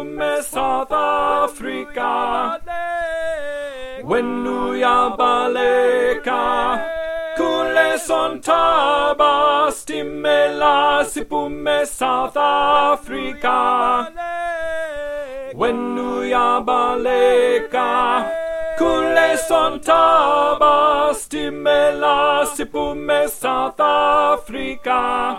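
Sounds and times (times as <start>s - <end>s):
tenor singing: 0.0s - 25.3s.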